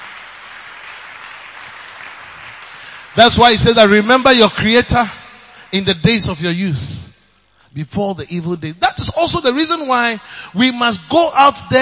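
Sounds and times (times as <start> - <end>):
congregation applauding during a church sermon: 0.0 - 4.8
speech: 3.2 - 7.1, 7.7 - 11.8.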